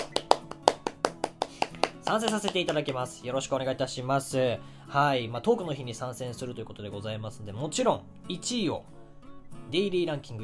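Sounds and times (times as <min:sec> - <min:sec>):
hands clapping: 0:00.0 - 0:03.2
speech: 0:02.1 - 0:09.0, 0:09.7 - 0:10.4.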